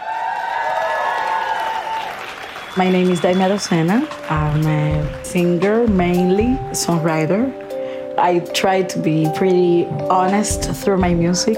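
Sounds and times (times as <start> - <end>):
audience applause and cheering for a live singer at the 2022 Afro Roots Fest in Miami: 0.0 - 6.7
speech: 2.8 - 7.6, 8.2 - 11.5.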